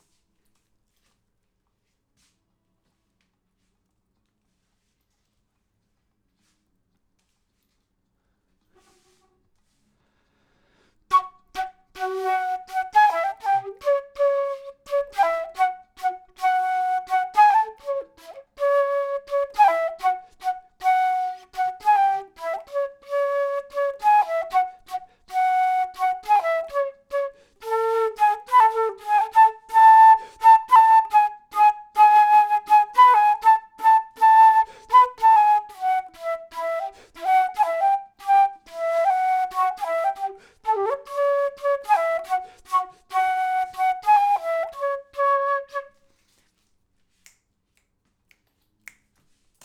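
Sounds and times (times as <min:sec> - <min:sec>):
flute intro: 0:11.1 - 0:46.0.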